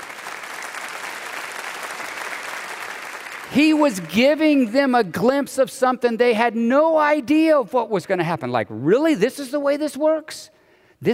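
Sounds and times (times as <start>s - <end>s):
audience applause: 0.0s - 4.2s
speech: 3.5s - 11.1s.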